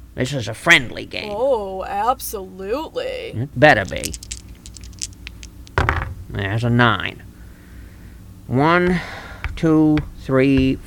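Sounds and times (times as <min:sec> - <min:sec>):
speech: 0:00.2 - 0:04.3, 0:06.4 - 0:07.3, 0:08.5 - 0:10.8
dice being rolled: 0:03.8 - 0:06.1.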